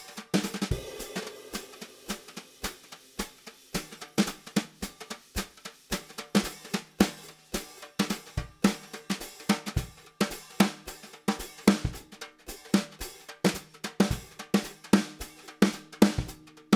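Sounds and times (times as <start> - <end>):
bebop jazz drumming: 0.3 - 16.7.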